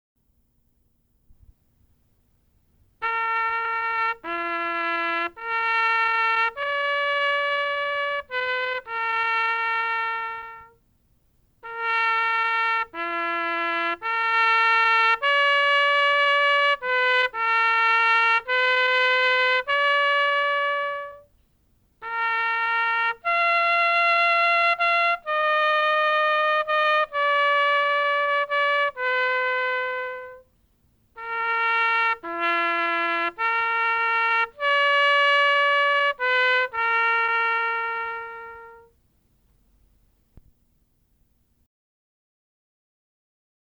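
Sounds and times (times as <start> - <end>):
trumpet bugle call: 3.0 - 10.8, 11.6 - 21.3, 22.0 - 30.5, 31.1 - 39.0.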